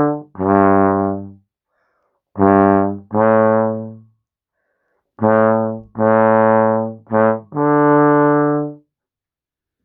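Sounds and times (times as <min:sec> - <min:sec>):
trombone playing a classical melody: 0:00.0 - 0:01.4, 0:02.4 - 0:04.1, 0:05.2 - 0:08.8.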